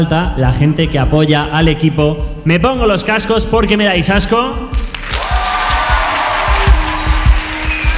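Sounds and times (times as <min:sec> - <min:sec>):
speech: 0:00.0 - 0:04.9
steady beat of low thumps: 0:00.0 - 0:07.9
dense continuous applause: 0:04.9 - 0:07.9.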